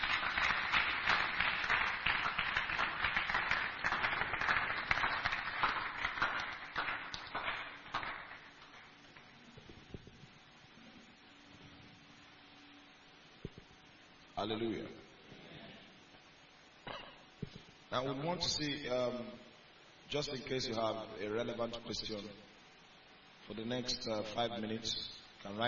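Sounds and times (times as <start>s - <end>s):
church congregation clapping for an apostle: 0.0s - 9.4s
speech: 14.4s - 15.0s, 18.0s - 19.4s, 20.1s - 22.4s, 23.5s - 25.6s.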